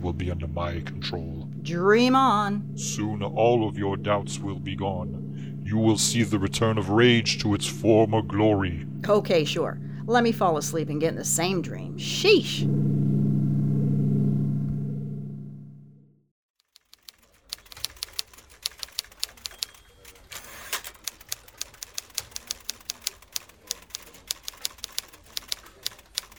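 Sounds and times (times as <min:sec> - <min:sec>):
speech: 0:00.1 - 0:13.0
low sustained hum: 0:00.2 - 0:16.2
antique typewriter clacking as a report is typed: 0:16.7 - 0:26.3.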